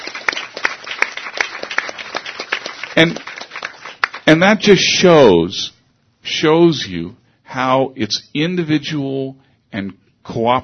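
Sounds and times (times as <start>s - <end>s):
audience applause: 0.0s - 4.3s
speech: 3.0s - 3.3s, 4.3s - 10.6s.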